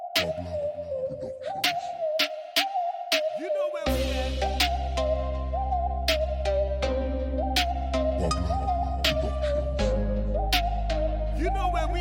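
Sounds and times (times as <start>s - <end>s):
reggae dancehall music: 0.2s - 11.9s.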